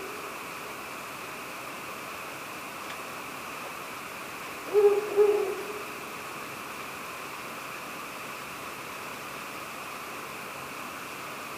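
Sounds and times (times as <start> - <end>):
hiss: 0.0 - 11.5
Ural owl hooting: 4.6 - 6.0.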